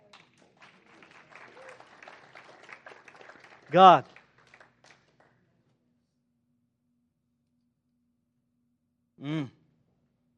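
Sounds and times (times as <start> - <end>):
audience clapping: 0.0 - 5.3
speech: 3.7 - 4.1.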